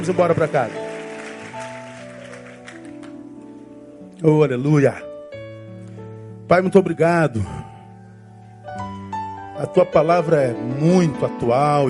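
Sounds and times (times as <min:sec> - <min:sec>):
speech: 0:00.0 - 0:00.8, 0:04.2 - 0:05.1, 0:06.5 - 0:07.7, 0:09.6 - 0:11.8
audience applauding: 0:00.0 - 0:03.3.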